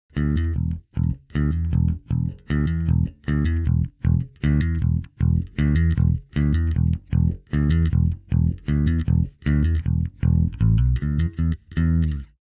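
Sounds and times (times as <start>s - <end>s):
bass: 0.0s - 12.4s.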